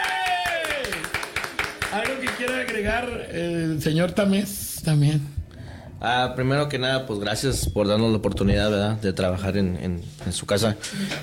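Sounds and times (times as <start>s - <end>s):
small group clapping for a home-service work crew: 0.0s - 3.1s
speech: 1.9s - 5.4s, 6.0s - 11.2s.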